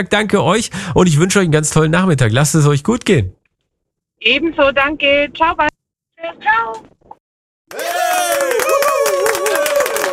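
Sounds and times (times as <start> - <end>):
speech: 0.0 - 3.4, 4.2 - 6.9, 7.7 - 9.7
applause: 7.7 - 10.1.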